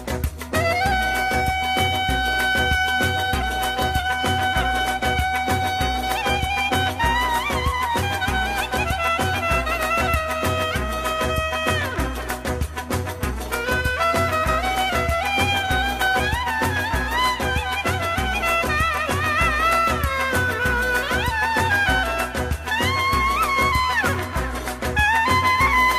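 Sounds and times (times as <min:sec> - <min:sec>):
solo clarinet: 0:00.3 - 0:25.9.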